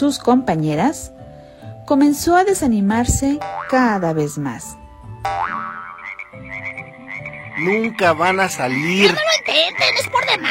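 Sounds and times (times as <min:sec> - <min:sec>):
speech: 0:00.0 - 0:01.2, 0:01.9 - 0:05.6, 0:07.6 - 0:10.4
frog croaking: 0:05.2 - 0:10.4.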